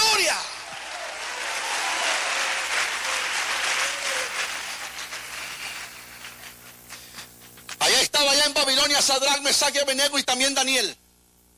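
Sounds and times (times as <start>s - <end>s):
audience applause: 0.0s - 7.6s
speech: 8.9s - 11.0s.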